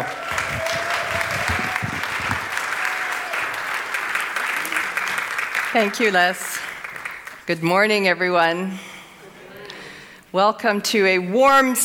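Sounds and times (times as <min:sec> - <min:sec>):
audience applause welcoming a speaker at a Sunday spiritual gathering: 0:00.0 - 0:07.5
speech: 0:05.8 - 0:06.5, 0:07.5 - 0:08.9, 0:10.3 - 0:11.8.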